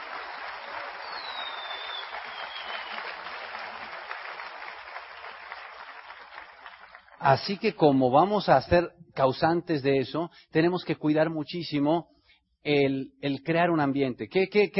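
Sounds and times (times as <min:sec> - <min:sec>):
audience applause: 0:00.0 - 0:07.4
speech: 0:07.2 - 0:14.7.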